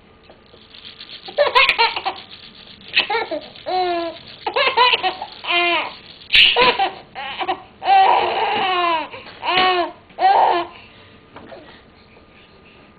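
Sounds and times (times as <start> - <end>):
baby laughing: 1.3 - 10.7.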